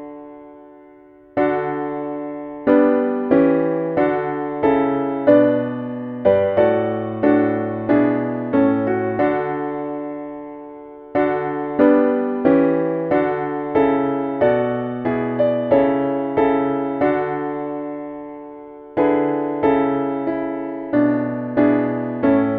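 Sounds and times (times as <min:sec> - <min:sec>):
piano: 0:00.0 - 0:22.5.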